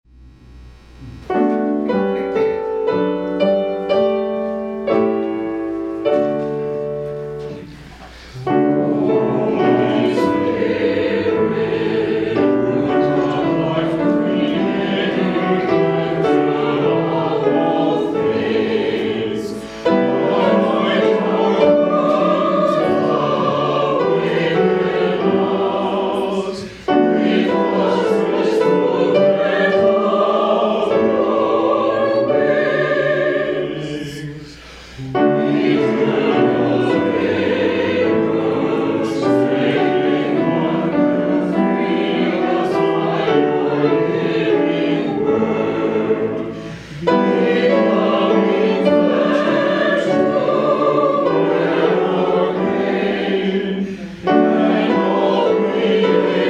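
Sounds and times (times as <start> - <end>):
hymn: 1.0 - 56.4.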